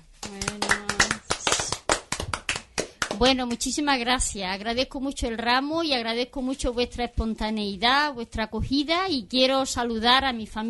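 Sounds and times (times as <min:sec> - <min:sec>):
studio applause: 0:00.2 - 0:03.3
speech: 0:03.2 - 0:10.6.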